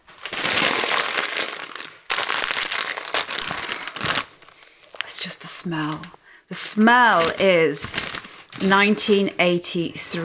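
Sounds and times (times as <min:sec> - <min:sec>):
crisp packet crinkled and torn open: 0:00.0 - 0:06.2, 0:06.9 - 0:09.2
speech: 0:05.2 - 0:10.2.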